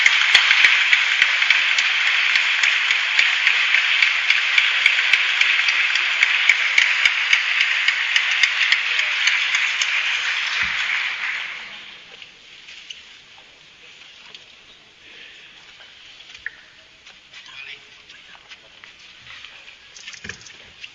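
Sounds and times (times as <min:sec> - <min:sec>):
crowd applauding: 0:00.0 - 0:12.1.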